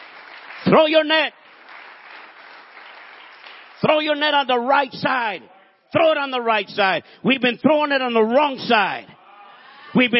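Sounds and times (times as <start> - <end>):
audience clapping: 0.0 - 4.5
speech: 0.7 - 1.4, 3.8 - 9.2, 9.9 - 10.1.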